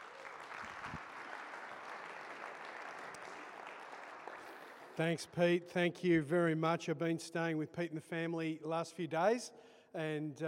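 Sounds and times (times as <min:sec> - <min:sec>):
audience applause: 0:00.0 - 0:05.0
speech: 0:05.0 - 0:10.4.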